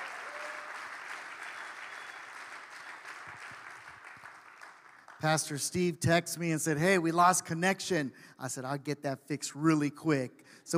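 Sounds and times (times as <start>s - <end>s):
church congregation applauding: 0.0s - 5.4s
speech: 5.2s - 10.7s.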